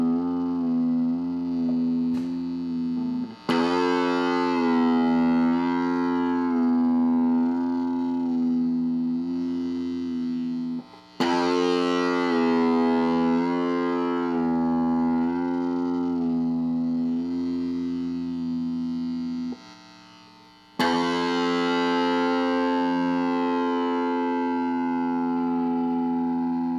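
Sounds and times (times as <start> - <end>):
guitar string bend: 0.0 - 20.2, 20.8 - 26.7.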